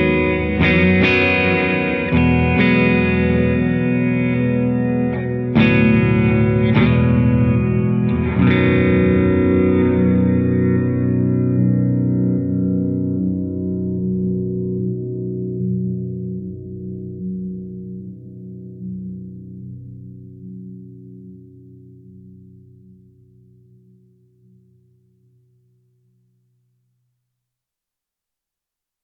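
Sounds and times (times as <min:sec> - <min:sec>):
open baritone guitar with reverse delay and reverb: 0:00.0 - 0:23.8.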